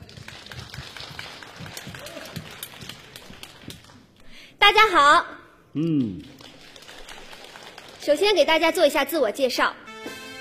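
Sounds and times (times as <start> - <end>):
audience applause at a variety show: 0.0 - 4.1, 6.0 - 8.2
speech: 4.6 - 6.3, 8.0 - 9.8.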